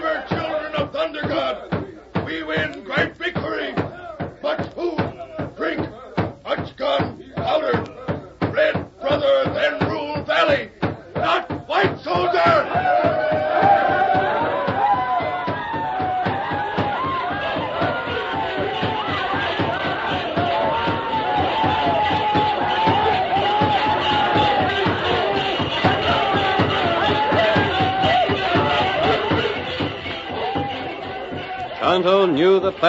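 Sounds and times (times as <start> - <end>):
people dancing and shouting: 0.0 - 32.8.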